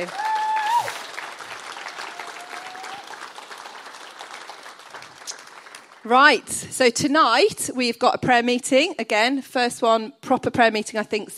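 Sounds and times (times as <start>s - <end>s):
speech: 0.0s - 0.3s, 6.0s - 11.3s
audience applause: 0.0s - 6.1s.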